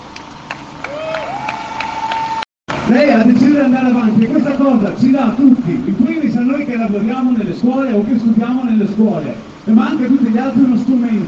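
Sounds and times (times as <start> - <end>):
audience rhythmic clapping: 0.1 - 2.5
speech: 3.0 - 11.2.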